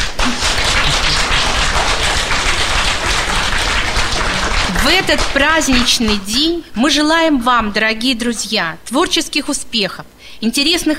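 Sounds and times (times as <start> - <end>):
applause: 0.0 - 6.4
speech: 4.9 - 10.9.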